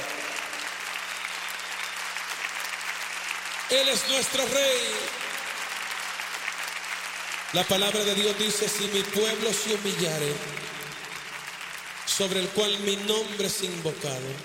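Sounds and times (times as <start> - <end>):
audience applause: 0.0 - 14.4
speech: 3.7 - 5.2, 7.5 - 10.8, 12.2 - 14.4.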